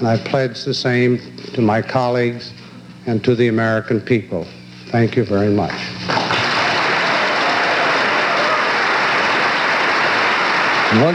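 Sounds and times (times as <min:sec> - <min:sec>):
speech: 0:00.0 - 0:06.4, 0:10.9 - 0:11.1
crowd of congressmen, senators and cabinet members applauding in the East Room: 0:06.1 - 0:11.1.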